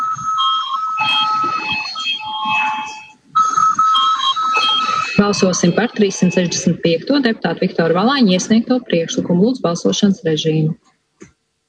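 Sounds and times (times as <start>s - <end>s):
parliament voting bell ringing: 0.4s - 3.2s, 3.9s - 6.8s
low murmur: 1.4s - 10.8s
speech: 5.3s - 10.8s.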